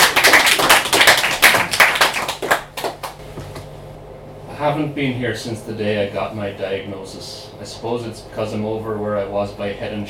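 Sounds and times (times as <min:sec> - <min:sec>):
crowd applauding: 0:00.0 - 0:03.2
speech: 0:04.6 - 0:10.0.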